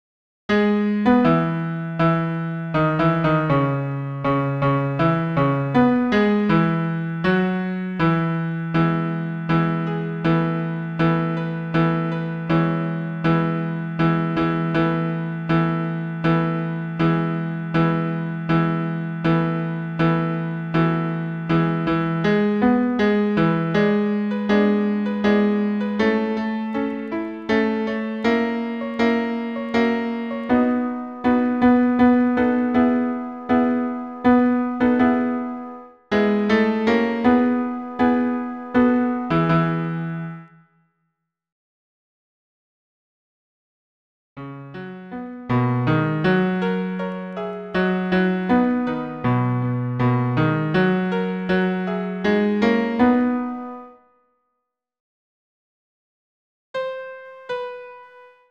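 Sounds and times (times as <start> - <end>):
piano bass accompaniment: 0.5 - 40.5, 44.4 - 53.9, 56.8 - 58.4.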